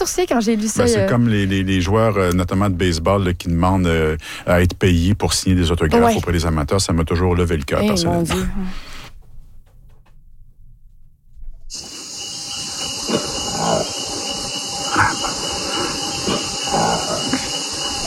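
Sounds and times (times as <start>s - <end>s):
speech: 0.0s - 8.9s
rainforest insects hissing: 11.7s - 18.0s
monkey grunting and howling in rainforest: 12.9s - 18.0s.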